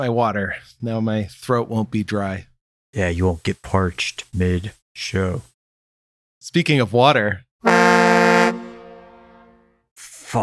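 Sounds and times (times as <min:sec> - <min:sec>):
speech: 0:00.0 - 0:05.5, 0:06.4 - 0:08.6
train whistle: 0:07.7 - 0:09.6.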